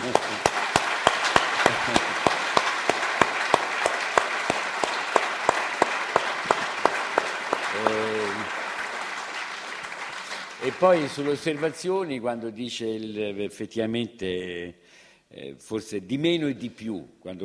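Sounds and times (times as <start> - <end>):
audience applause: 0.0 - 12.1
speech: 10.8 - 17.4.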